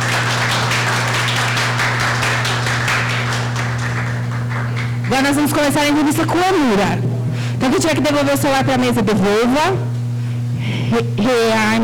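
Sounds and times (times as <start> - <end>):
crowd clapping: 0.0 - 5.9
low constant electrical hum: 0.0 - 11.8
speech: 5.2 - 9.9, 10.6 - 11.8.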